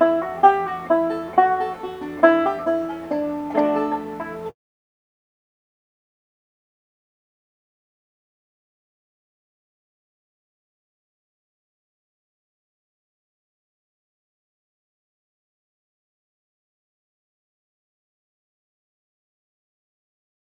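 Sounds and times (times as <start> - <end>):
banjo tune: 0.0 - 4.5.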